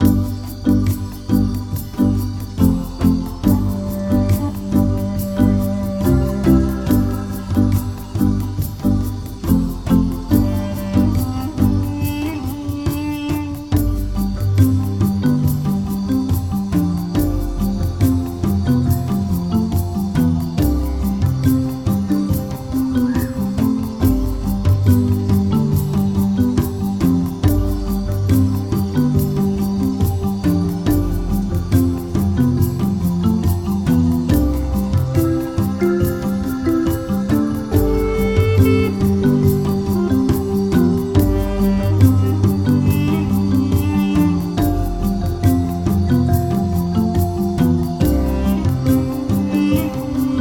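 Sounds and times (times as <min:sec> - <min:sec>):
ambient music: 0:00.0 - 0:50.3.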